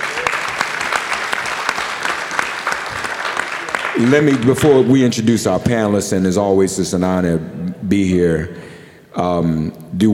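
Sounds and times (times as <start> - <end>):
audience applause: 0.0 - 4.7
speech: 4.0 - 10.1.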